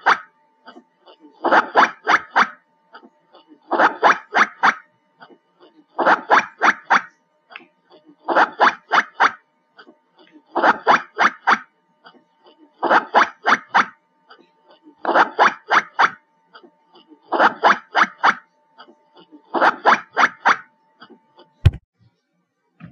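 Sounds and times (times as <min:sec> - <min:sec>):
black giant squirrel calls: 0:00.0 - 0:00.3, 0:01.4 - 0:02.6, 0:03.7 - 0:05.3, 0:06.0 - 0:07.2, 0:08.2 - 0:09.9, 0:10.6 - 0:11.7, 0:12.8 - 0:14.0, 0:15.0 - 0:16.2, 0:17.2 - 0:18.4, 0:19.4 - 0:20.7.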